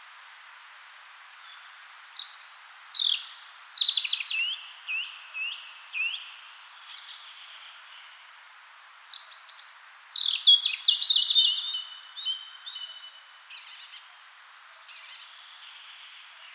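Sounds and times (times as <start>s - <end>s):
European robin singing: 2.1s - 6.3s, 9.1s - 13.1s
speech: 2.9s - 4.2s.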